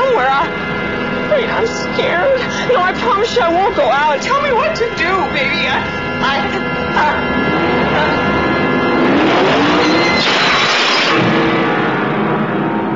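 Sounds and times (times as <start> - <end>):
loud noise: 0.0 - 12.9
car engine revving: 2.7 - 12.9
speech: 2.9 - 8.4.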